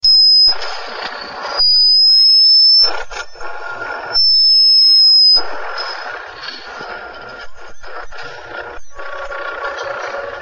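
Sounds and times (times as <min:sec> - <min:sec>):
radio interference: 0:00.0 - 0:10.3.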